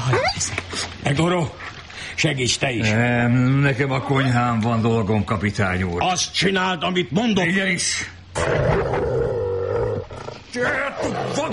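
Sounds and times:
speech: 0:00.1 - 0:01.6, 0:02.2 - 0:09.1, 0:10.6 - 0:11.5
angry dog growling: 0:08.4 - 0:11.5.

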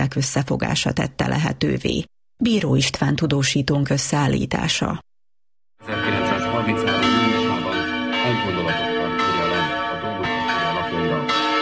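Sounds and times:
speech: 0:00.1 - 0:05.1, 0:06.6 - 0:07.2
church bell of Madéfalva ringing: 0:05.8 - 0:11.6.

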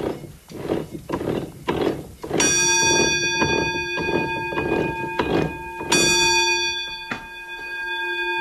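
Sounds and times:
rhythmic wooden clatter of running mill machinery: 0:00.0 - 0:07.2
warning bell on a running roller mill: 0:02.4 - 0:08.4.

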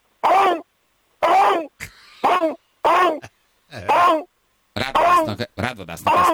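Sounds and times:
person imitating a raptor dinosaur call: 0:00.2 - 0:00.6, 0:01.2 - 0:04.3, 0:04.9 - 0:05.4, 0:06.0 - 0:06.3
speech: 0:05.2 - 0:06.3.

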